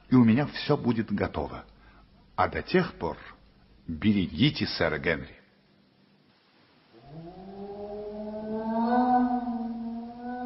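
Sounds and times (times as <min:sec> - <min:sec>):
speech: 0:00.1 - 0:01.7, 0:02.4 - 0:05.4
dog howling: 0:07.0 - 0:10.4.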